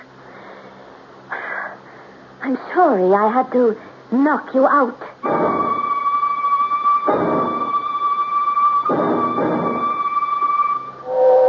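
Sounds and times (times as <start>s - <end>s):
speech: 2.4s - 5.4s
London train pulling into a station: 5.2s - 11.4s
high squealing whine: 5.2s - 11.4s.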